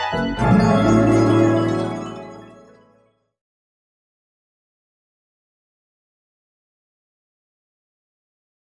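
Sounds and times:
cosmic jazz music: 0:00.2 - 0:02.8.

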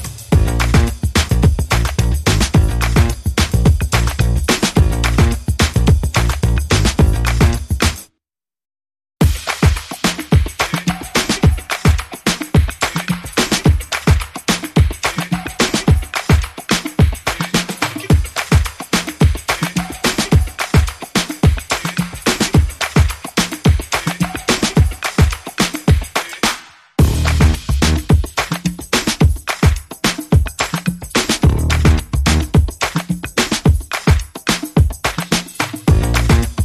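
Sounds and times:
bass: 0:00.0 - 0:08.0, 0:27.0 - 0:28.1, 0:31.4 - 0:32.6, 0:35.9 - 0:36.6
drums: 0:00.0 - 0:08.1, 0:09.2 - 0:36.6.

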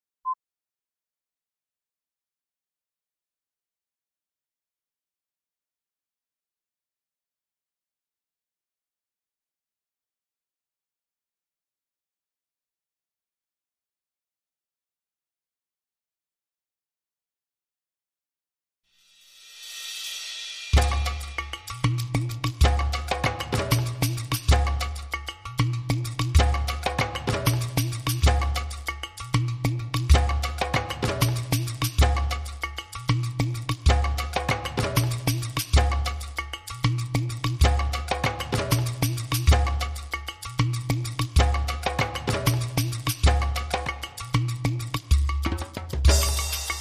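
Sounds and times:
percussion: 0:18.9 - 0:46.8.

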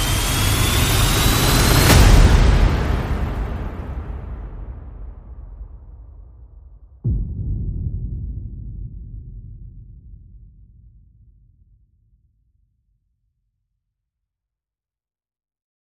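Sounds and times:
percussion: 0:00.0 - 0:12.0.

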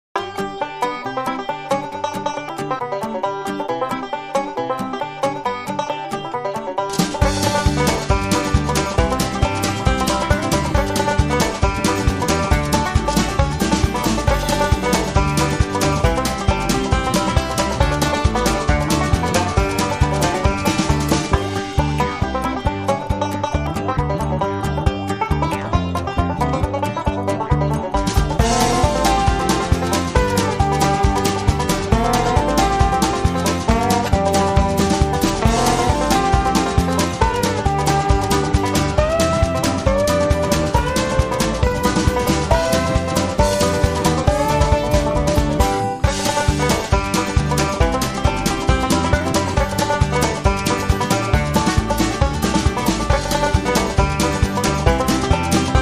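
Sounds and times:
banjo: 0:00.0 - 0:55.8.

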